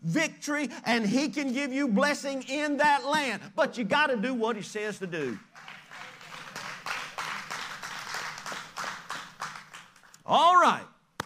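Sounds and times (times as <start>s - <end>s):
speech: 0.1s - 5.6s, 10.3s - 10.9s
rhythmic hand clapping: 5.1s - 10.2s.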